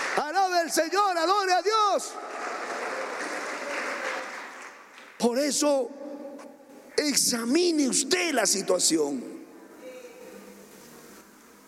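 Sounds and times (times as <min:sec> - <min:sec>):
crowd applauding: 0:00.0 - 0:05.2
speech: 0:00.2 - 0:04.1, 0:05.2 - 0:06.1, 0:07.0 - 0:09.5.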